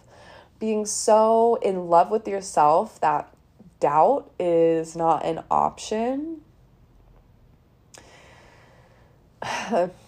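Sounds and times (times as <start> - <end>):
deep breath: 0.0 - 0.6, 7.9 - 9.6
speech: 0.6 - 6.4, 9.4 - 10.0.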